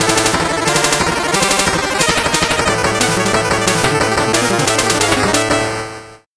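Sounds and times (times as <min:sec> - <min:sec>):
8-bit jingle: 0:00.0 - 0:06.0.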